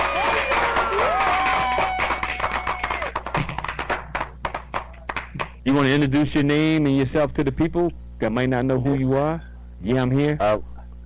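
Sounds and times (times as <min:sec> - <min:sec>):
clapping: 0:00.0 - 0:05.6
speech: 0:05.7 - 0:10.7.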